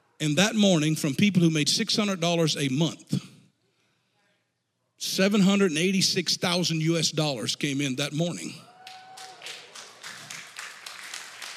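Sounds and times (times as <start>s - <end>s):
speech: 0.2s - 3.3s, 5.0s - 8.7s
church congregation clapping: 8.6s - 11.5s.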